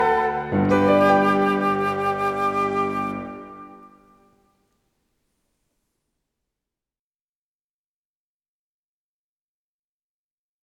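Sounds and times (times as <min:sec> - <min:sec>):
fast piano and flute piece: 0:00.0 - 0:04.4.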